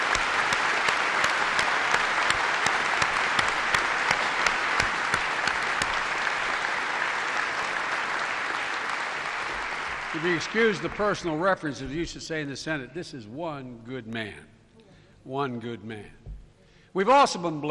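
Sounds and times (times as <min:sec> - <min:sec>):
audience applause: 0:00.0 - 0:11.8
speech: 0:10.2 - 0:14.5, 0:15.2 - 0:16.2, 0:17.0 - 0:17.6.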